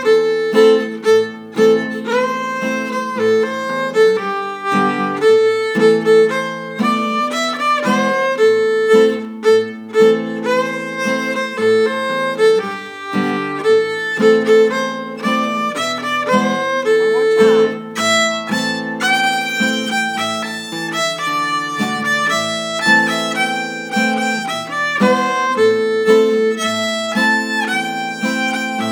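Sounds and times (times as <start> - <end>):
folk tune: 0.0 - 28.9.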